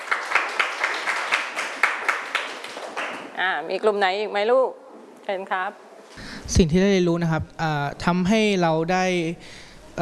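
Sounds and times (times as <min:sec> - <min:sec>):
classroom applause for a group: 0:00.0 - 0:03.4
speech: 0:03.4 - 0:09.9.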